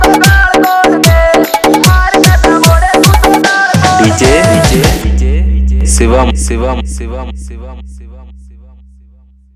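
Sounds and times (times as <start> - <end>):
Haryanvi dance music mix: 0.0 - 7.3.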